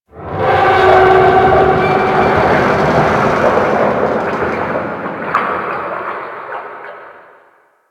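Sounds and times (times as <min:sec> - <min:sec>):
creaking under ocean pressure: 0:00.4 - 0:06.0.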